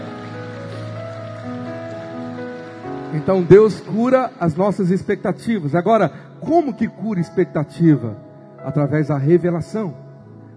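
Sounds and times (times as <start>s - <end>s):
audience applauding: 0.0s - 5.9s
sustained keyboard chords: 0.0s - 10.5s
speech: 3.1s - 10.0s.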